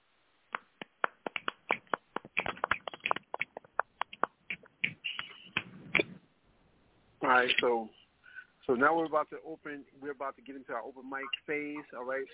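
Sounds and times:
scattered applause from a small crowd: 1.0 - 4.3
speech: 7.3 - 8.0, 8.7 - 12.3.

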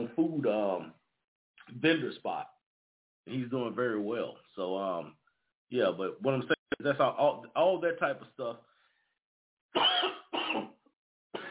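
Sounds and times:
speech: 0.1 - 1.0, 1.7 - 2.6, 3.2 - 8.7
person coughing: 9.8 - 10.8, 11.4 - 11.5.

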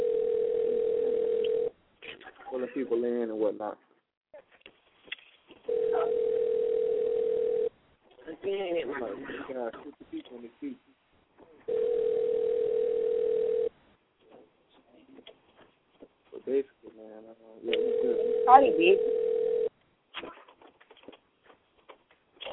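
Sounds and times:
ringback tone of an unanswered phone call: 0.0 - 1.7, 5.7 - 7.7, 11.7 - 13.7, 17.8 - 19.7
speech: 2.6 - 3.9, 8.4 - 11.0, 16.5 - 19.3.

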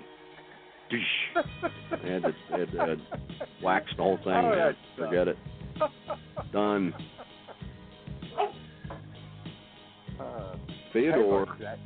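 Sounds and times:
speech: 0.9 - 7.2, 10.3 - 11.8
laughter: 1.0 - 7.7
dog barking: 8.4 - 9.0
dog whimpering: 8.4 - 9.1.

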